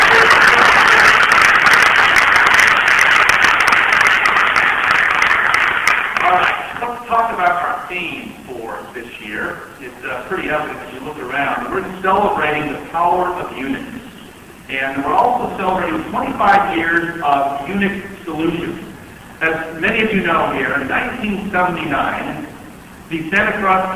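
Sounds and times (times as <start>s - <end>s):
crowd applauding: 0.0s - 7.8s
speech: 7.9s - 14.0s, 14.7s - 22.5s, 23.1s - 23.9s.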